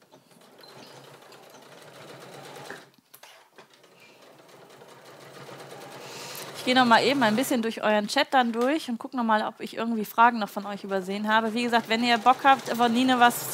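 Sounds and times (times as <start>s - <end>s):
sewing machine stitching: 0.0s - 2.9s, 3.6s - 7.6s, 10.8s - 13.5s
speech: 6.6s - 13.5s.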